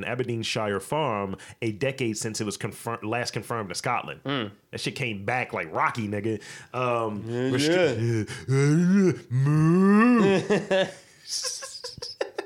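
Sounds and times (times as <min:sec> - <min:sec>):
speech: 0:00.0 - 0:11.6
man imitating a dying cow groaning: 0:07.2 - 0:10.4
laughter: 0:10.0 - 0:12.4.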